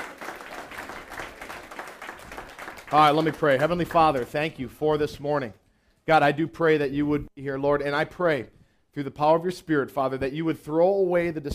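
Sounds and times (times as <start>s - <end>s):
church congregation clapping during a service: 0.0s - 4.7s
speech: 2.9s - 11.5s.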